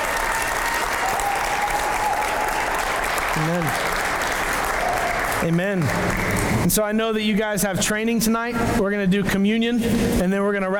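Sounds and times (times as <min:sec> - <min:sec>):
church audience applauding: 0:00.0 - 0:07.0
speech: 0:03.4 - 0:04.0, 0:05.4 - 0:10.7.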